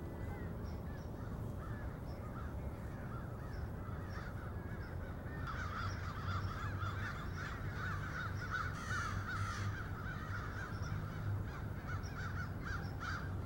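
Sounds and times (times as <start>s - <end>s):
crow flock cawing in Cincinnati: 0.2s - 13.4s.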